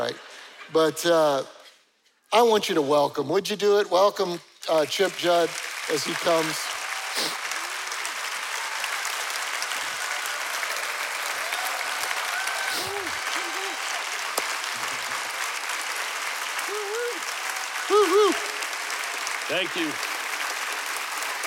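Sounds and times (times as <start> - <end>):
speech: 0.0 - 1.6, 2.3 - 7.4, 19.5 - 20.1
audience applause in a standing ovation: 4.7 - 21.4.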